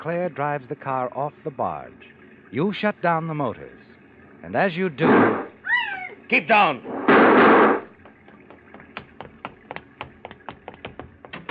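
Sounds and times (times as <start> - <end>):
speech: 0.0 - 3.8, 4.4 - 5.4, 6.3 - 7.8
gunshots: 5.0 - 5.5, 7.0 - 7.8.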